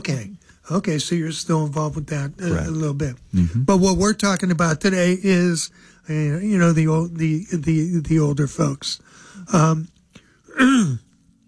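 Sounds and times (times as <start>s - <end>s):
speech: 0.0s - 9.9s, 10.6s - 11.0s
person with a frog in the throat clearing throat: 3.4s - 3.6s, 10.5s - 11.1s.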